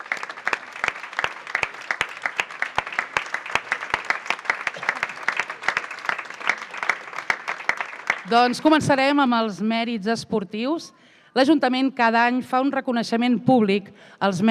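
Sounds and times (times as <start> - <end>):
audience applauding for volunteers: 0.0 - 8.8
speech: 8.2 - 14.4.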